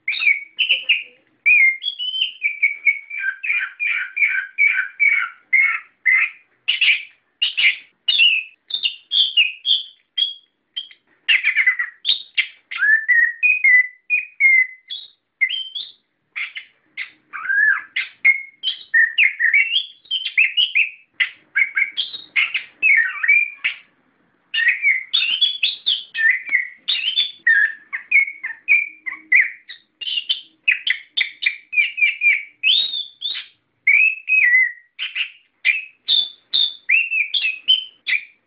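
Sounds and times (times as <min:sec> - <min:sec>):
bird singing: 0:00.0 - 0:38.4.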